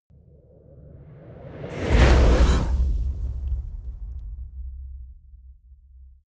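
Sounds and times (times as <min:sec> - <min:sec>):
fire torch whoosh hit: 0:01.4 - 0:06.2.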